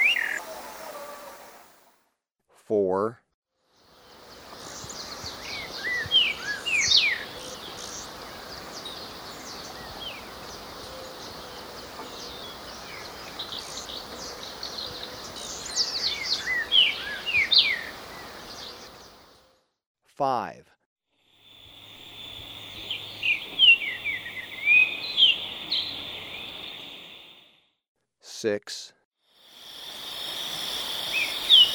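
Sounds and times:
Streaked Saltator calling in Ecuador: 0.0s - 1.8s, 4.0s - 19.4s, 21.5s - 27.5s, 29.6s - 31.7s.

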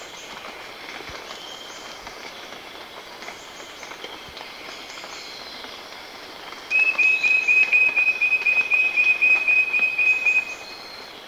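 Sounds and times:
insect hum: 0.0s - 11.2s
Wing-banded Wren calling: 6.7s - 10.9s.

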